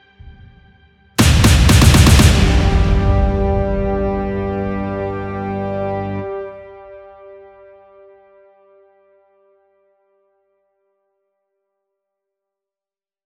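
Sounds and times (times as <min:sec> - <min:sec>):
trailer-style arrangement of a Christmas song: 0:00.0 - 0:07.7.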